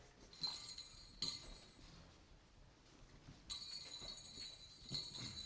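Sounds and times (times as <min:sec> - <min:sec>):
handbells being moved and clinking: 0:00.2 - 0:02.2, 0:03.5 - 0:05.4.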